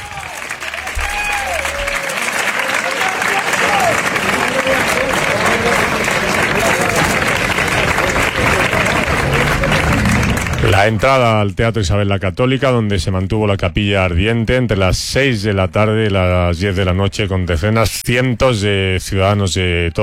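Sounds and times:
crowd clapping palmas as coffin enters: 0.0 - 11.5
speech: 10.8 - 20.0.

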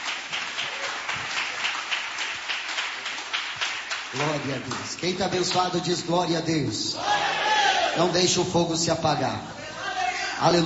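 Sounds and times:
congregation applauding to welcome a preacher at a church service: 0.0 - 5.8
speech: 4.1 - 7.4, 8.0 - 9.6, 10.4 - 10.6.

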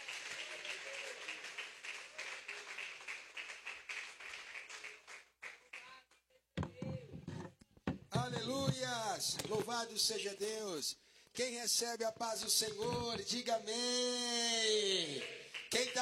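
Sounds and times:
audience clapping: 0.0 - 6.2, 15.0 - 16.0
speech: 8.2 - 16.0.

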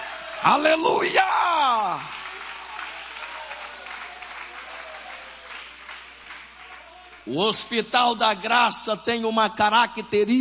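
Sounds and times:
speech: 0.4 - 2.2, 7.3 - 10.3
audience applauding: 1.7 - 7.3.

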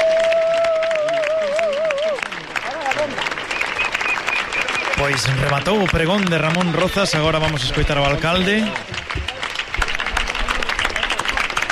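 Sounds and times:
crowd applause: 0.0 - 11.7
speech: 5.1 - 9.0.

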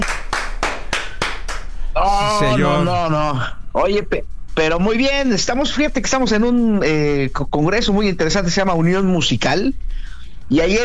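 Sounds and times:
applause: 0.0 - 1.8
speech: 2.0 - 10.8.

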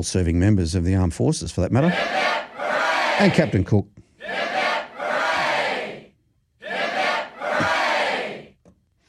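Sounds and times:
speech: 0.0 - 2.5, 3.2 - 4.0
crowd giving three cheers for Vietnam veterans and armed forces: 1.8 - 3.6, 4.2 - 6.0, 6.6 - 8.5.

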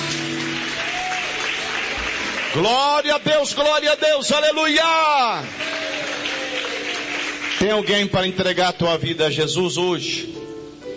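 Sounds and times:
audience applause: 0.0 - 4.0, 4.7 - 8.1
speech: 2.5 - 5.8, 7.6 - 10.4.

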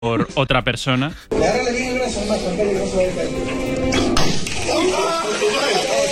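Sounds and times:
speech: 0.0 - 5.6
gunshot during a demonstration: 4.0 - 4.7.

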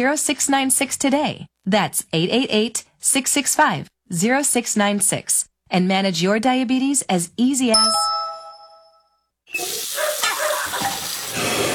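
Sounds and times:
speech: 0.0 - 8.2
water rushing from a kitchen sink faucet during a plumbing problem: 9.5 - 11.7.

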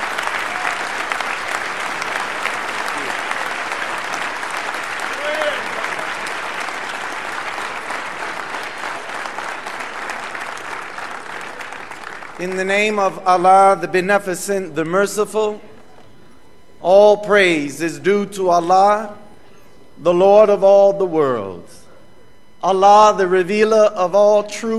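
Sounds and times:
faint cheers: 0.0 - 6.7
audience applause: 0.0 - 12.4
speech: 12.4 - 15.7, 16.8 - 19.2, 20.0 - 21.8, 22.6 - 24.7.

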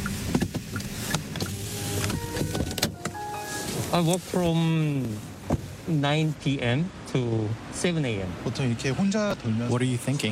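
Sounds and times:
delivery truck driving: 0.9 - 6.0
speech: 3.9 - 5.3, 5.9 - 10.2.

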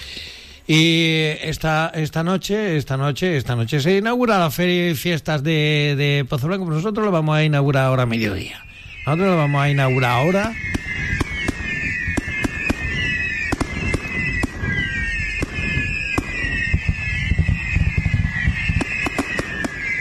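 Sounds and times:
speech: 0.7 - 10.8
fireworks going off: 7.8 - 19.9.

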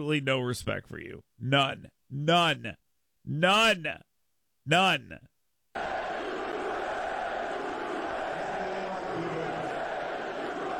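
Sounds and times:
speech: 0.0 - 4.1, 4.7 - 5.9
crowd booing: 5.8 - 10.7.

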